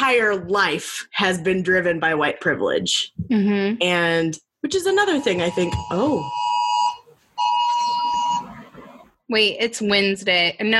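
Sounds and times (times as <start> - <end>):
speech: 0.1 - 6.5, 9.3 - 10.7
curfew emergency alert alarm: 5.0 - 9.0.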